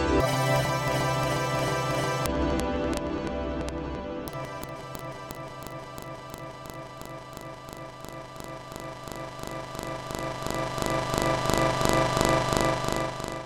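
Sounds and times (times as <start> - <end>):
delay effect: 0.2 - 13.4.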